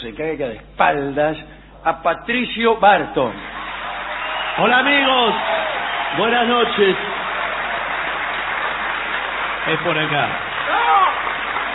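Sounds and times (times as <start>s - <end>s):
speech: 0.1s - 3.5s, 4.6s - 7.1s, 9.7s - 10.5s
audience ovation: 3.4s - 11.7s.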